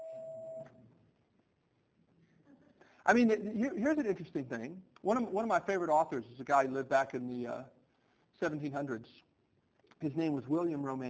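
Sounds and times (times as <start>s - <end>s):
bell ringing: 0.0s - 0.7s
speech: 3.1s - 7.8s, 8.4s - 9.3s, 10.0s - 11.0s.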